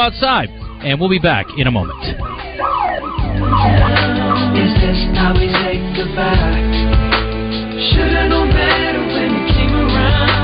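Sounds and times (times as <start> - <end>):
alarm going off in the studio: 0.0 - 6.7
speech: 0.0 - 6.9, 7.8 - 10.3.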